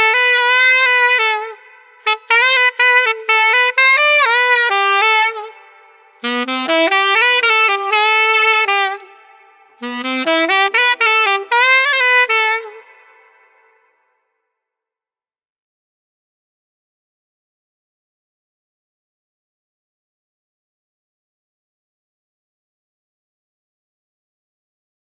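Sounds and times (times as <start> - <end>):
street alto saxophone playing: 0.0 - 13.9.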